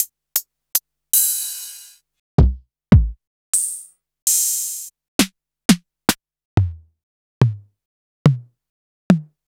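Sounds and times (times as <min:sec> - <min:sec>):
electro drum kit: 0:01.2 - 0:05.9, 0:06.6 - 0:07.7, 0:08.3 - 0:08.5, 0:09.1 - 0:09.4.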